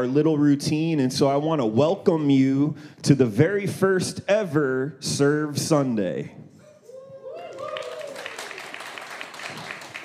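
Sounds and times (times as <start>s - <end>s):
speech: 0.0s - 6.5s
audience cheering and whooping at a church service: 6.7s - 10.0s.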